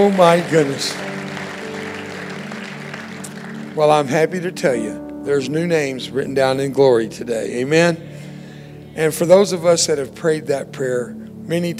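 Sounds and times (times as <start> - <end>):
speech: 0.0 - 1.1, 3.8 - 8.1, 9.0 - 11.7
audience clapping: 0.0 - 4.2
sustained low musical tones: 0.0 - 11.7.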